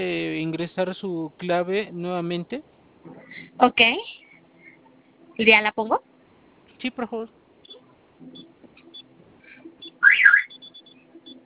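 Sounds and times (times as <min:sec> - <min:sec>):
speech: 0:00.0 - 0:02.8, 0:03.6 - 0:04.2, 0:05.4 - 0:06.1, 0:06.8 - 0:07.4, 0:08.2 - 0:08.5
security alarm system warbling tone at a branch office: 0:09.5 - 0:11.3.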